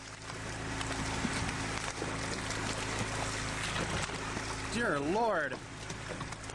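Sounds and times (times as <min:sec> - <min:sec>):
flying Asian carp leaping from Illinois River water: 0:00.0 - 0:04.9
speech: 0:04.8 - 0:06.3.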